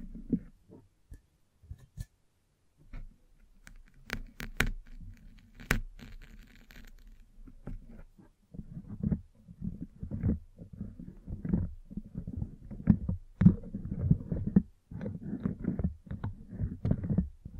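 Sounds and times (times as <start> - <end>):
brushing and scratching on a microphone: 0.0 - 0.9, 2.9 - 17.5.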